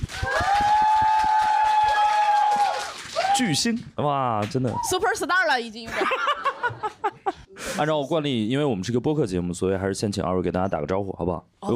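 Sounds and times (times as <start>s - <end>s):
audience clapping: 0.0s - 5.2s
speech: 3.4s - 6.4s, 7.8s - 11.7s
laughter: 5.9s - 7.6s.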